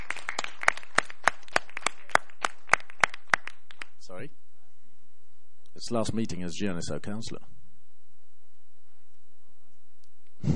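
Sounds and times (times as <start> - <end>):
round of applause: 0.0 - 4.0
speech: 5.8 - 7.6.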